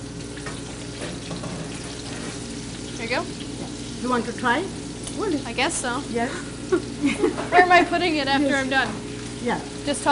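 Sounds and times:
food frying in oil in a wok: 0.0s - 10.1s
speech: 3.1s - 10.1s.

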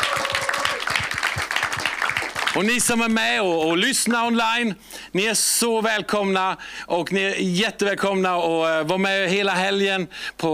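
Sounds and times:
audience applause: 0.0s - 3.0s
speech: 2.6s - 10.5s.

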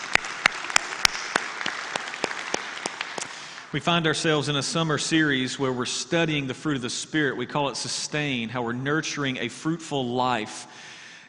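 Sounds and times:
hand claps in a room during a church service: 0.0s - 3.8s
hiss: 0.0s - 11.2s
speech: 3.7s - 11.2s.

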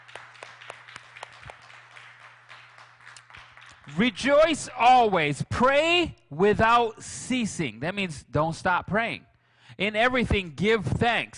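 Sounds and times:
audience hand clapping: 0.0s - 4.6s
speech: 3.9s - 11.3s.

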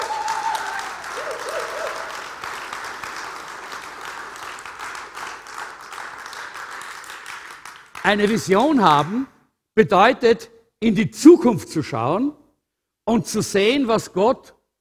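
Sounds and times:
person whooping: 0.0s - 2.3s
audience applause: 0.0s - 9.2s
speech: 8.1s - 12.4s, 13.1s - 14.6s.

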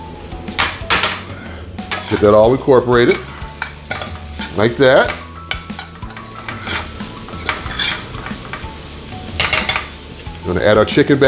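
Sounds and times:
food sizzling in a hot pan: 0.0s - 11.2s
utensil scraping and stirring in a pan: 1.0s - 10.0s
speech: 2.1s - 3.3s, 4.6s - 5.2s, 10.5s - 11.2s.

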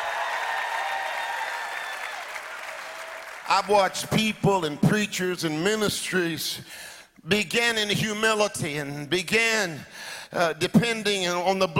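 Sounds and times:
church congregation clapping: 0.0s - 4.4s
speech: 3.5s - 11.7s.

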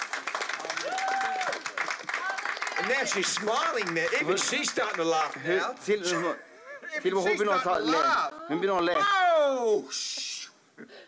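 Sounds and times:
loud audience applause: 0.0s - 5.5s
speech: 2.8s - 11.0s.

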